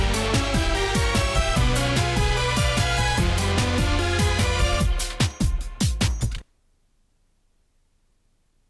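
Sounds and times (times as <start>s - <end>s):
techno music from gold-plated tape: 0.0s - 6.4s.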